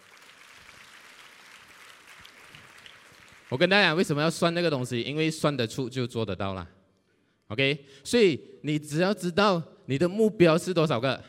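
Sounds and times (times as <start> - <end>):
audience applause: 0.0 - 4.0
speech: 3.5 - 6.8, 7.5 - 11.2.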